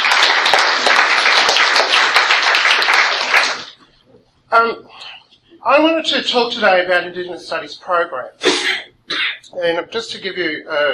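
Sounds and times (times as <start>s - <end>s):
audience applause: 0.0s - 3.8s
speech: 4.5s - 8.8s, 9.5s - 10.9s.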